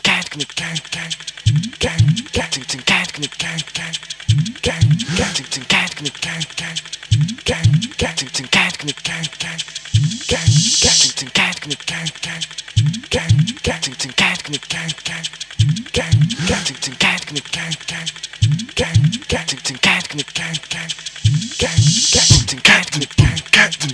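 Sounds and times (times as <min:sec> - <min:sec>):
jungle beatboxing: 0:00.0 - 0:23.9.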